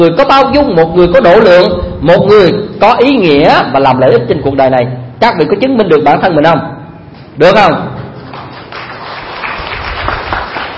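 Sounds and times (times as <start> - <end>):
speech: 0.0 - 6.7, 7.4 - 8.0
audience applause during a Buddhist dharma talk: 8.3 - 10.7.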